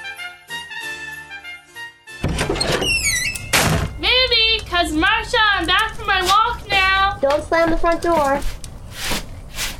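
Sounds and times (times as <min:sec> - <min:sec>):
front door: 0:02.1 - 0:09.7.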